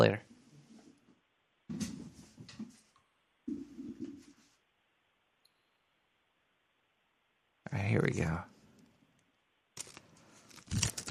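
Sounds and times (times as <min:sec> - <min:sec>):
speech: 0:00.0 - 0:00.3, 0:07.8 - 0:08.5
sheet of paper NDA document rustling while unfolded: 0:09.8 - 0:11.0.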